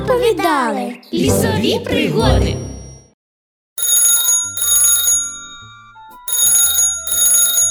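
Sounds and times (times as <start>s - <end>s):
speech: 0.2s - 2.7s
telephone ringing: 3.8s - 7.6s.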